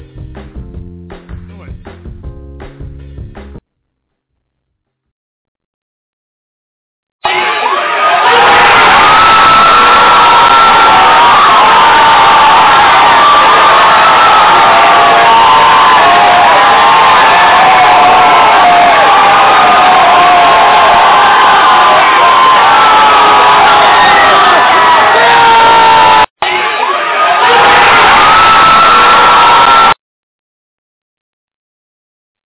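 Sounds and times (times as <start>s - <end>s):
Seattle Seahawks fans cheering at a bar in New York City: 7.2s - 30.0s.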